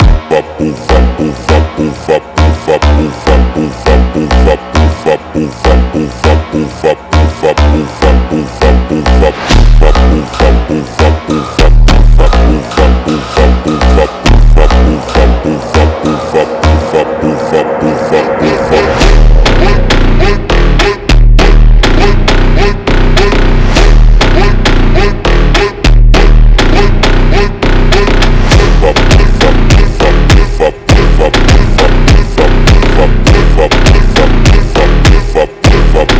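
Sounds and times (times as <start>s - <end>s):
slowed phonk music: 0.0s - 36.1s.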